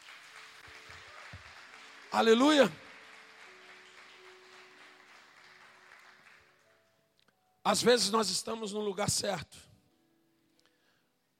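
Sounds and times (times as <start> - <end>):
audience applause: 0.0 - 6.8
speech: 2.1 - 2.8, 7.7 - 9.7.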